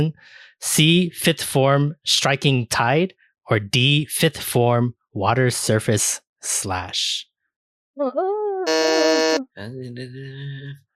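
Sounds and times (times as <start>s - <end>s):
speech: 0.0s - 7.3s, 8.0s - 10.9s
quiz contestant buzzer: 8.7s - 9.4s.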